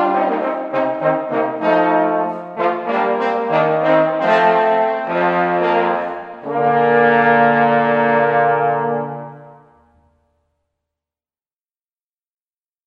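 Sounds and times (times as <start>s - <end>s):
trombone trio: 0.0s - 9.8s.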